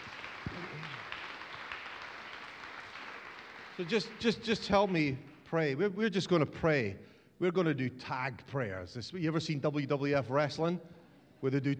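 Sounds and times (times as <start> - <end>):
crowd clapping: 0.0 - 5.6
speech: 3.8 - 11.7.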